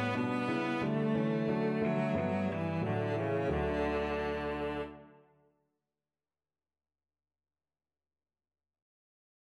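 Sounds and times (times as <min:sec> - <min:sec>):
violoncello: 0:00.0 - 0:05.3.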